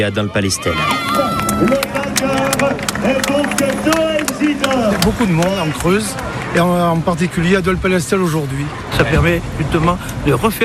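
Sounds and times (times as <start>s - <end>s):
speech: 0.0s - 10.6s
crowd shouting and cheering: 0.1s - 7.5s
scattered claps: 0.9s - 6.9s.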